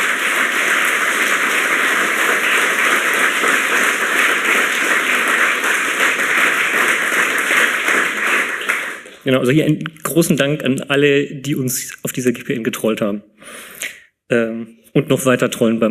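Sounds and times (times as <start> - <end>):
audience applause: 0.0 - 9.3
speech: 9.3 - 13.7, 14.3 - 15.8.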